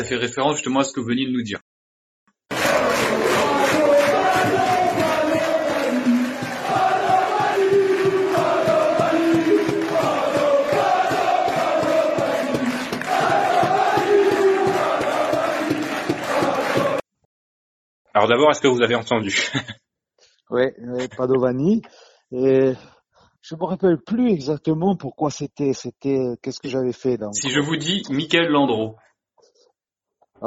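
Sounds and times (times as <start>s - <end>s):
speech: 0.0s - 1.6s, 18.2s - 19.8s, 20.5s - 29.1s
large football crowd chanting in unison: 2.5s - 17.0s
laughter: 19.3s - 19.8s.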